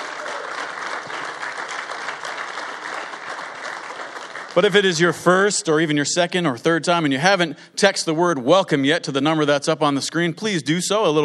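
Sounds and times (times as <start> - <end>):
audience clapping: 0.0 - 5.5
speech: 4.5 - 11.2.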